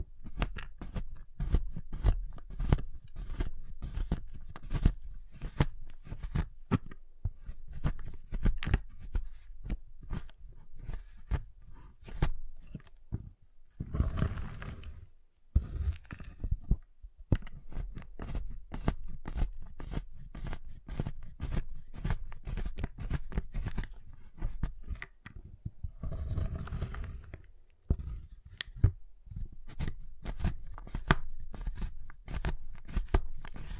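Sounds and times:
giant chocolate bar cutting: 0:00.2 - 0:13.0, 0:13.8 - 0:15.0, 0:17.4 - 0:25.2, 0:26.0 - 0:27.3, 0:27.9 - 0:33.7.

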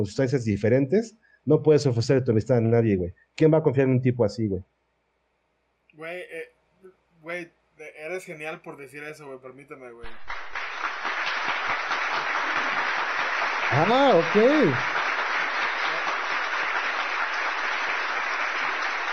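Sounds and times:
speech: 0:00.0 - 0:04.8, 0:06.0 - 0:06.5, 0:07.2 - 0:10.4, 0:13.7 - 0:15.0
applause: 0:10.0 - 0:19.1.

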